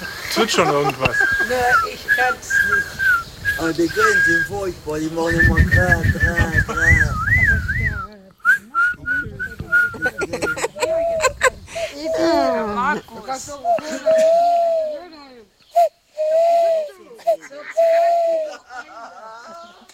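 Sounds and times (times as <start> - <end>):
laughter: 0.0 - 3.0, 6.2 - 7.2, 9.7 - 12.7, 13.6 - 14.9, 17.0 - 19.9
speech: 0.4 - 3.0, 3.6 - 7.0, 12.9 - 14.6
person whistling in imitation of an owl call: 1.0 - 4.6, 5.2 - 11.4, 13.6 - 18.7.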